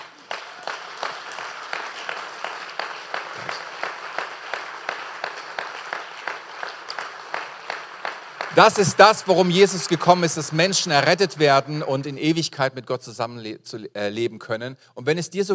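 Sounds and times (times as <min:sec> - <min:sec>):
audience applauding: 0:00.0 - 0:11.9
speech: 0:08.6 - 0:15.5.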